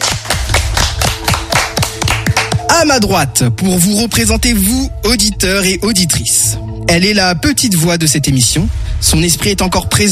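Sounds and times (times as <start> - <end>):
applause: 0.0 - 2.7
speech: 2.7 - 10.1.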